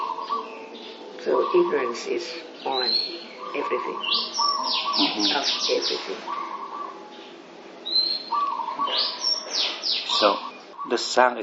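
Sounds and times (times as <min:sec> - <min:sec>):
bird chirping: 0:00.0 - 0:11.4
speech: 0:01.2 - 0:06.4, 0:10.2 - 0:11.4.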